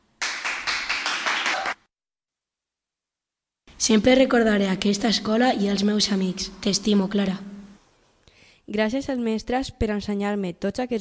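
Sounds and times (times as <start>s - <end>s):
applause for the teachers: 0.2s - 1.9s
speech: 3.8s - 7.5s, 8.7s - 10.9s.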